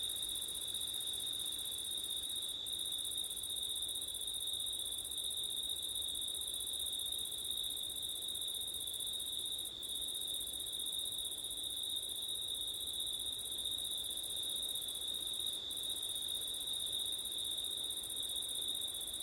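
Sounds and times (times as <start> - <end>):
crickets chirping on a September night: 0.0 - 19.2
wind on a September night: 0.0 - 19.2.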